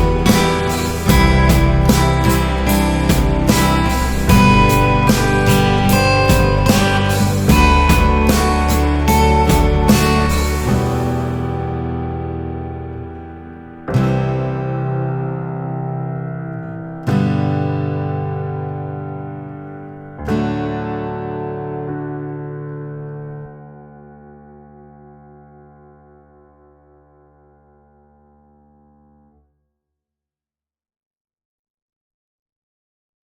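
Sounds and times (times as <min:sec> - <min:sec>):
acoustic music: 0:00.0 - 0:24.4.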